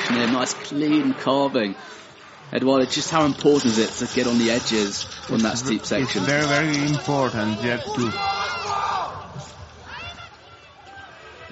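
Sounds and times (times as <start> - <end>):
speech: 0.1 - 8.6
French team shouting encouragement: 7.3 - 11.5.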